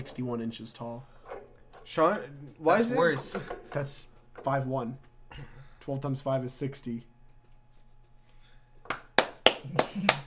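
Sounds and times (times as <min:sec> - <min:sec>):
speech: 0:00.0 - 0:07.1, 0:09.6 - 0:10.2
people clapping hands: 0:08.8 - 0:10.2.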